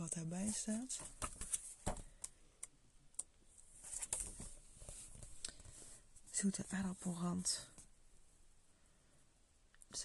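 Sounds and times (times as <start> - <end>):
speech: 0.0 - 1.3, 6.4 - 7.7
book pages flipping: 0.1 - 2.4, 3.8 - 5.8.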